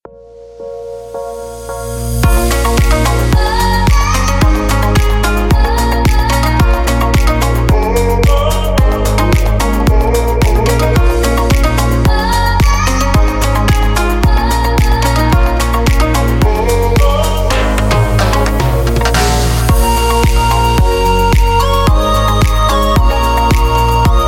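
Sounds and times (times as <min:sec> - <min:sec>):
electro music: 0:00.0 - 0:24.2.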